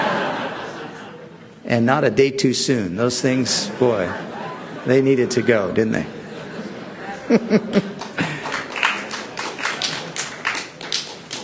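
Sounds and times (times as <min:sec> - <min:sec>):
laughter: 0:00.0 - 0:01.5, 0:03.2 - 0:10.5
speech: 0:01.7 - 0:06.2, 0:07.3 - 0:07.9
hands clapping: 0:07.7 - 0:11.4.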